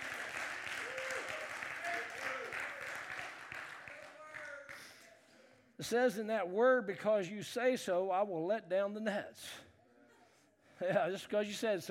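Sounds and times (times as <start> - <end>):
audience applause: 0.0 - 4.8
speech: 5.8 - 9.6, 10.8 - 11.8.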